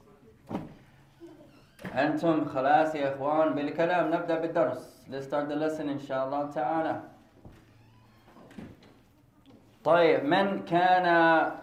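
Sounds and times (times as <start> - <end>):
speech: 2.0 - 7.1, 9.8 - 11.6
door being shut: 7.4 - 9.0.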